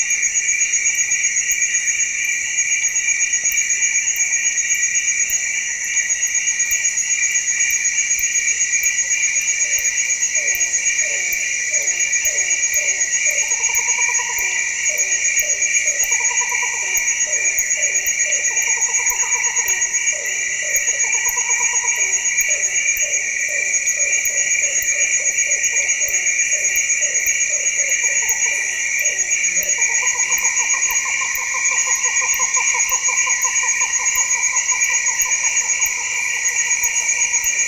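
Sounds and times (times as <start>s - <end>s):
ambience deep in a rainforest: 0.0s - 37.6s.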